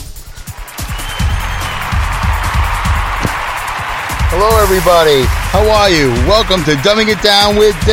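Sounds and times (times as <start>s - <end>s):
audience applause welcoming a host: 0.4s - 7.9s
speech: 4.7s - 7.9s.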